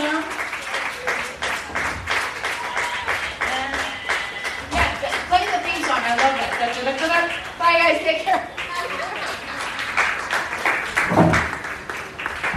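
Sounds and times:
audience clapping after a comedy set: 0.0s - 12.5s
voices calling out and cheering: 2.3s - 9.9s.

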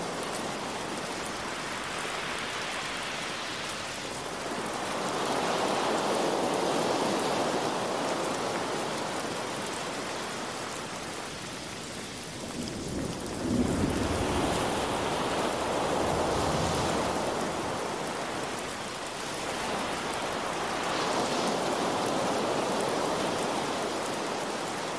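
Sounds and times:
ocean waves: 0.0s - 11.8s, 12.8s - 24.9s
rain hiss: 0.0s - 24.9s
low rumble of thunder: 12.4s - 18.3s.

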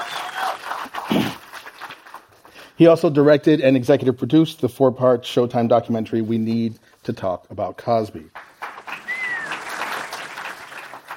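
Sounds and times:
audience applause: 0.0s - 2.6s, 8.4s - 11.1s
speech: 2.8s - 8.4s.

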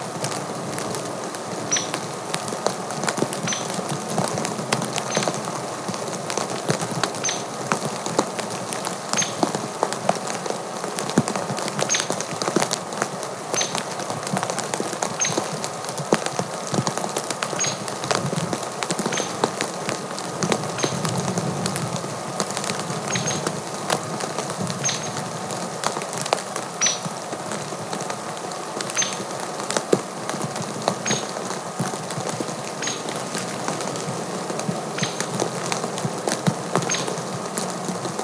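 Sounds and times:
snow falling on a cabin deck: 0.0s - 38.2s.

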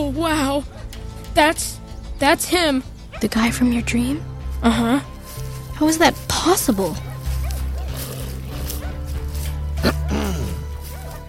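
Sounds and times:
speech: 0.1s - 5.1s, 5.8s - 7.1s
dog barking and yipping: 0.6s - 1.2s, 6.8s - 11.2s.

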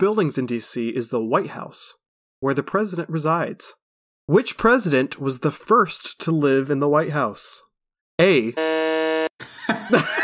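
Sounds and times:
speech: 0.0s - 10.2s
quiz buzzer being buzzed in: 8.6s - 9.4s
laughter: 9.4s - 10.2s.

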